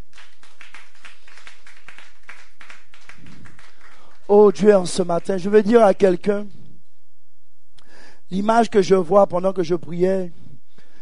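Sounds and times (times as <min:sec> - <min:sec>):
congregation clapping during a church worship service: 0:00.0 - 0:06.2
speech: 0:04.3 - 0:06.6, 0:08.3 - 0:10.4.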